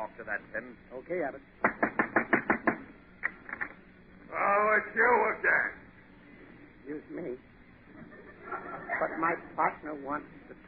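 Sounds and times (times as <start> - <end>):
speech: 0.0 - 2.0, 4.3 - 5.8, 6.9 - 10.6
knocking on a door: 1.6 - 2.9
laughter: 7.9 - 9.8.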